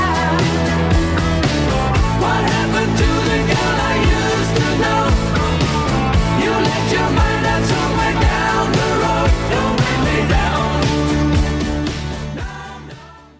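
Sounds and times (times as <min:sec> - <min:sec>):
70s style drum machine beat: 0:00.0 - 0:13.0.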